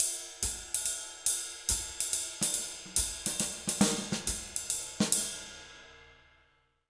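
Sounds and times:
jazz Latin drum loop: 1.7 - 5.5.

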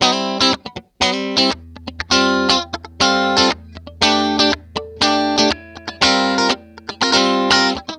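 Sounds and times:
disco guitar chord lick: 1.0 - 7.9.

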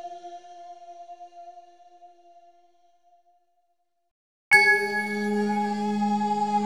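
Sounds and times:
bell atmosphere: 4.5 - 6.4.

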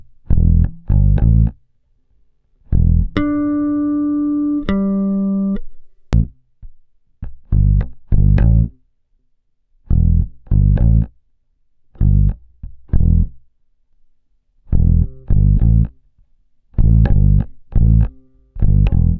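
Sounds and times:
bass grooves: 0.0 - 1.6, 2.6 - 6.4, 7.2 - 8.8, 9.9 - 11.2, 12.0 - 13.4, 14.7 - 16.0, 16.8 - 19.1.

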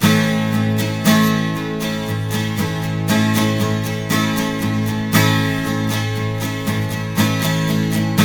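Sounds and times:
twelve-string guitar A sharp major chord: 0.0 - 8.2.

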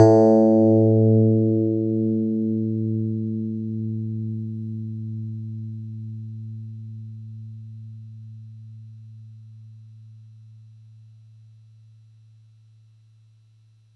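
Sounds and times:
Yamaha YX81Z FM tine synth: 0.0 - 3.6.

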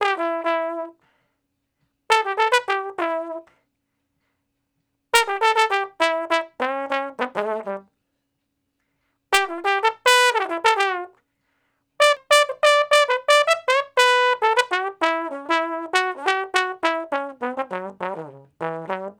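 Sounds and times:
straight-muted trombone in E for R&B solos: 0.0 - 1.0, 2.1 - 3.5, 5.2 - 7.9, 9.4 - 11.2, 12.0 - 19.1.

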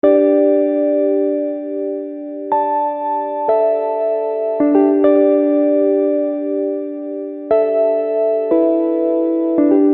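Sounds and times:
keyboard: 0.0 - 9.9.

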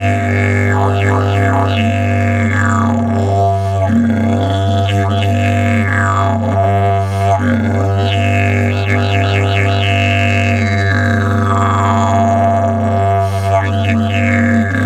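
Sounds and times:
long didgeridoo drone in G: 0.0 - 14.8.

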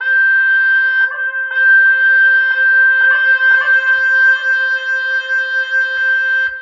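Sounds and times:
zurna playing: 0.0 - 6.6.

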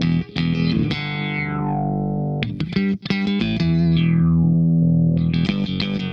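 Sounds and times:
funk guitar shot: 0.0 - 6.1.

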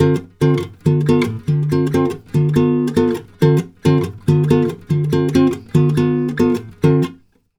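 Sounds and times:
guitar playing D minor 7 chord in Brazilian bossa style: 0.0 - 7.2.

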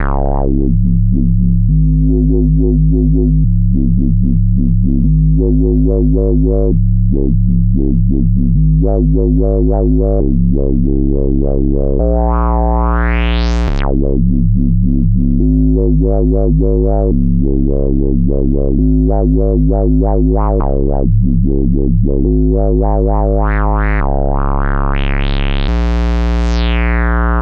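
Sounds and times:
drum and bass with wow bass: 0.0 - 27.4.

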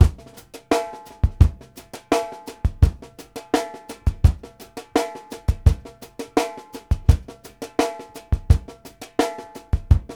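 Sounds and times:
drums: 0.0 - 10.1.

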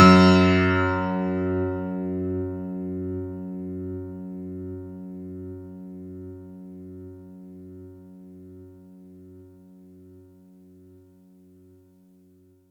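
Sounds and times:
synth note F sharp one: 0.0 - 2.3.

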